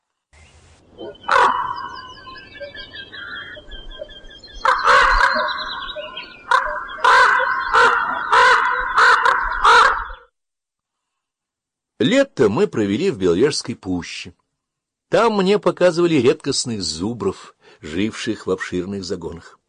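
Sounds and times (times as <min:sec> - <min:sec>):
speech: 0:01.0 - 0:01.4, 0:12.0 - 0:14.4, 0:15.1 - 0:19.6
crow cawing: 0:01.0 - 0:02.3, 0:04.6 - 0:10.2.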